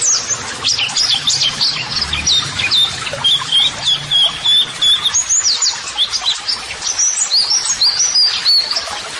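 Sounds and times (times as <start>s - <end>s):
white-eye high chirping and twitters: 0.0s - 8.9s.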